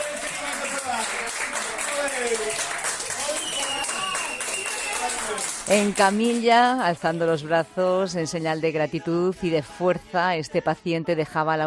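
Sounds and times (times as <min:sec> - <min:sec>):
applause for patient leaving intensive care: 0:00.0 - 0:06.8
speech: 0:05.3 - 0:11.6.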